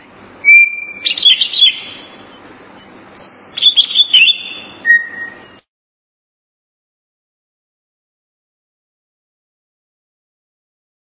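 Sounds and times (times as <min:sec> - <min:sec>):
greater green leafbird song: 0:00.0 - 0:05.7.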